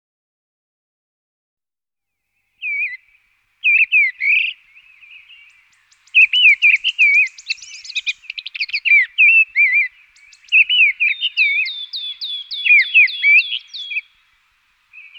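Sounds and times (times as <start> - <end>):
mistle thrush singing: 2.6 - 15.1.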